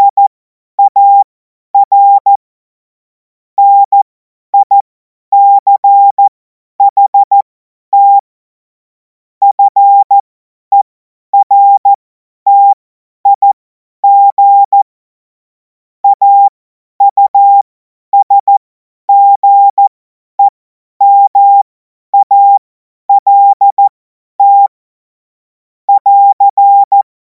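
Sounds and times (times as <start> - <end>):
CW Morse code beeps: 0.0 - 2.4, 3.6 - 4.0, 4.6 - 4.8, 5.4 - 7.4, 8.0 - 8.2, 9.4 - 14.9, 16.0 - 17.6, 18.2 - 24.7, 25.9 - 27.1.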